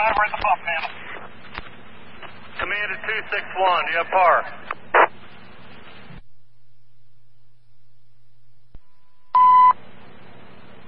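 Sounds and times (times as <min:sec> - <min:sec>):
speech: 0:00.0 - 0:01.0, 0:02.6 - 0:04.7
fire dispatch radio hiss: 0:00.0 - 0:06.2
radio click: 0:04.6 - 0:05.1
alarm tone test on a fire dispatch radio channel: 0:09.3 - 0:09.8.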